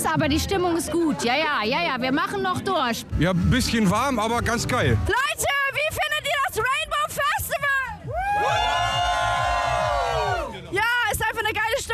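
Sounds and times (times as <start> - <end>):
speech: 0.1 - 6.0
festival crowd cheering and shouting: 6.2 - 11.1.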